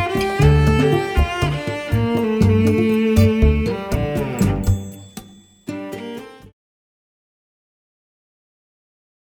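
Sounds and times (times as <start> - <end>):
Latin ballad on cello: 0.0 - 4.9.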